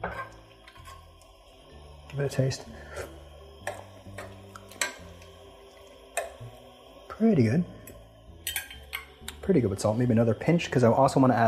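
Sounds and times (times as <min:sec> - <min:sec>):
speech: 0:02.1 - 0:03.1, 0:07.2 - 0:07.8, 0:09.5 - 0:11.4
spoon clicking against a pot of simmering tomato sauce: 0:08.4 - 0:09.4.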